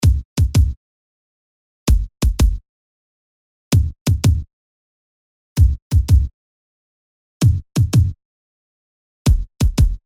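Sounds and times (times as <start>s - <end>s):
kick drum: 0.0s - 0.8s, 1.9s - 2.6s, 3.7s - 4.5s, 5.6s - 6.3s, 7.4s - 8.2s, 9.3s - 10.0s.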